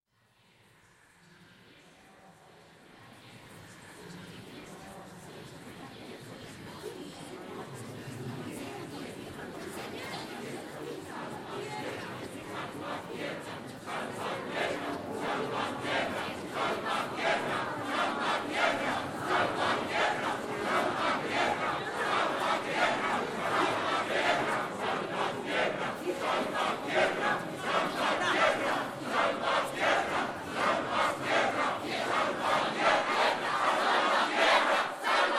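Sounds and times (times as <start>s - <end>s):
monster choirs: 10.0s - 35.3s.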